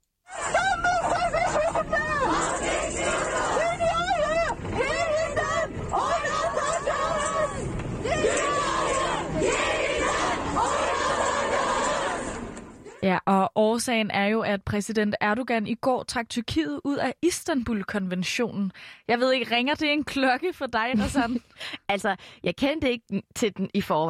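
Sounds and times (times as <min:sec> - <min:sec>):
laughter: 0:00.3 - 0:03.2
crowd of women shouting and chanting in a street protest: 0:00.3 - 0:13.1
speech: 0:13.8 - 0:24.0.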